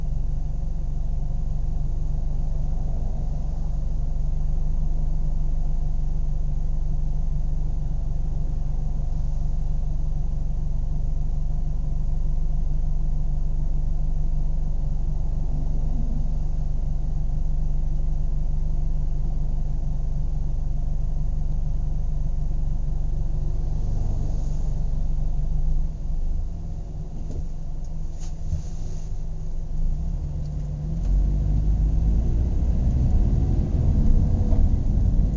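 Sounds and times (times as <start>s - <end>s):
car engine idling and accelerating: 0.0s - 35.3s.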